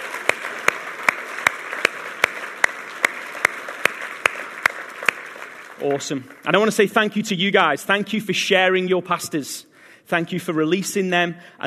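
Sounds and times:
audience applause: 0.0s - 6.9s
speech: 5.8s - 11.6s.

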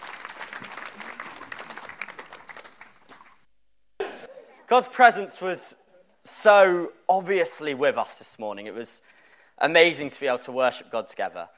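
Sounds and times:
audience clapping welcoming a speaker at a church service: 0.0s - 3.5s
speech: 4.7s - 11.5s.

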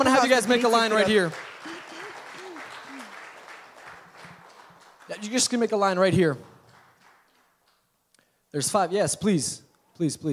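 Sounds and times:
speech: 0.0s - 1.4s, 5.1s - 6.5s, 8.5s - 10.3s
church congregation round of applause: 0.0s - 7.9s.

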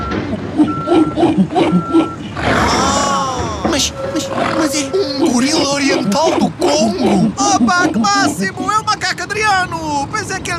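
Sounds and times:
truck reversing alarm beeps while unloading: 0.0s - 8.4s
murmuring voices: 2.4s - 8.4s
laughter: 2.5s - 3.9s
speech: 4.7s - 10.5s.

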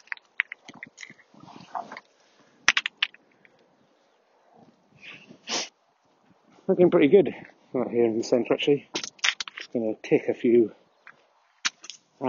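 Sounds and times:
stones clinking together: 0.0s - 3.6s, 8.9s - 9.8s, 11.0s - 12.1s
speech: 6.7s - 9.0s, 9.7s - 10.8s.

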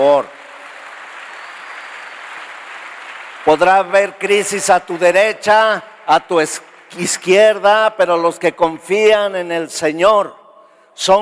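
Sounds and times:
speech: 0.0s - 0.4s, 3.4s - 10.4s, 11.0s - 11.2s
loud applause: 0.0s - 7.6s.

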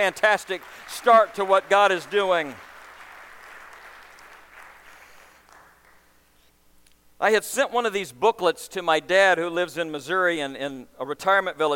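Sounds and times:
speech: 0.0s - 2.7s, 7.2s - 11.7s
audience applause: 0.0s - 6.1s.

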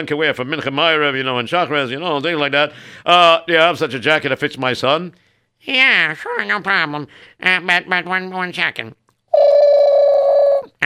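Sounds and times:
speech: 0.0s - 9.0s
telephone ringing with electronic tone: 9.4s - 10.5s.

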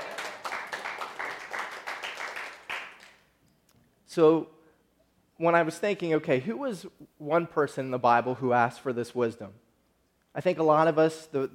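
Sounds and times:
audience clapping: 0.0s - 3.2s
speech: 4.2s - 4.6s, 5.4s - 9.6s, 10.3s - 11.5s.

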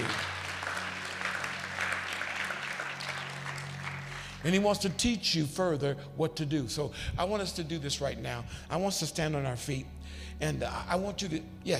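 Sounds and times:
audience clapping hands: 0.0s - 4.6s
speech: 4.4s - 11.7s.

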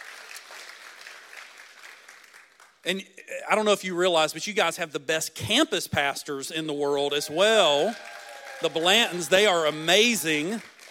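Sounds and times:
audience hand clapping: 0.0s - 2.9s, 7.3s - 10.8s
speech: 2.8s - 10.7s.

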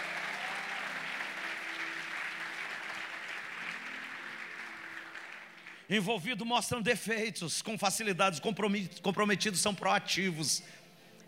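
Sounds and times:
audience applauding: 0.0s - 5.9s
speech: 5.9s - 10.8s.

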